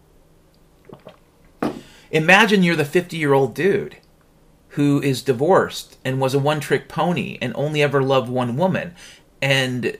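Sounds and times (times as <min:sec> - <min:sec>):
person swallowing a sip of water: 0:00.8 - 0:01.8
speech: 0:02.1 - 0:04.0, 0:04.8 - 0:09.9.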